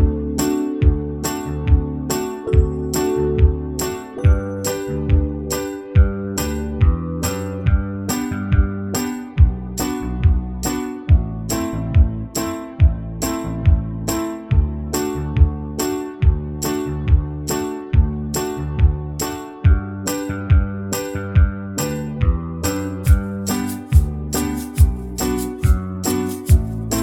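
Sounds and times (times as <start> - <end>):
banjo backing track in the key of G: 0.0 - 27.0.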